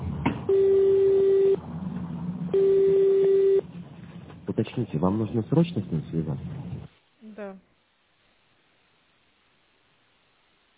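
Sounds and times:
telephone ringback tone with no answer: 0.5s - 1.6s, 2.5s - 3.6s
speech: 4.8s - 6.7s.

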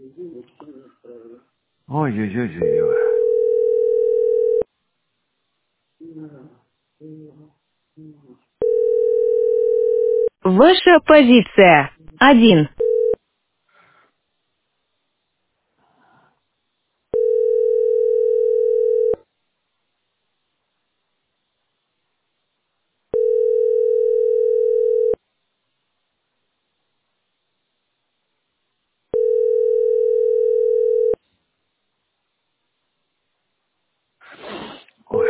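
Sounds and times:
speech: 1.9s - 3.1s, 10.6s - 12.7s
telephone ringback tone: 2.6s - 4.6s, 8.6s - 10.3s, 12.8s - 13.2s, 17.1s - 19.2s, 23.1s - 25.2s, 29.1s - 31.2s
faint sniffing or rustling: 34.2s - 35.2s.

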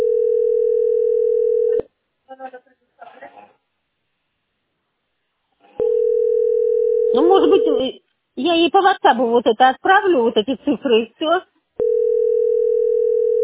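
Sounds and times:
telephone dial tone: 0.0s - 1.8s, 5.8s - 7.2s, 11.8s - 13.4s
speech: 7.2s - 11.5s.

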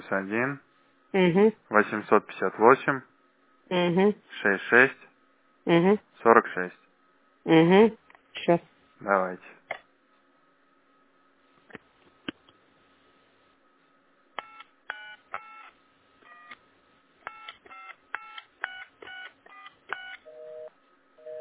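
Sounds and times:
speech: 0.1s - 3.1s, 3.7s - 6.8s, 7.4s - 9.8s
phone number dialed with touch-tone beeps: 17.3s - 21.3s
telephone busy signal tones: 20.0s - 21.3s.

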